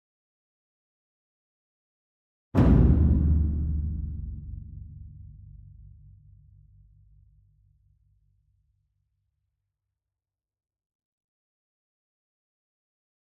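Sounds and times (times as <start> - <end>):
distant ensemble concert bass drum and taiko hit: 2.6 - 6.5.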